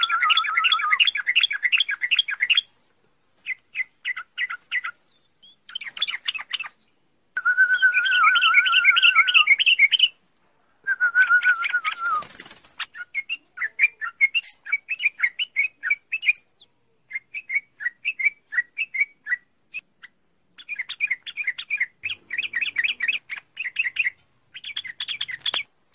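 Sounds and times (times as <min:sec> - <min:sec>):
bird song: 0:00.0 - 0:25.9.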